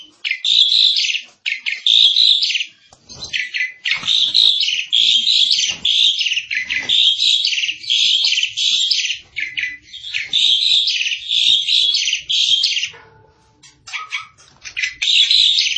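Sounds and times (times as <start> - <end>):
Asian pied starling in varied full song with fill-in phrases: 0.3 - 15.7.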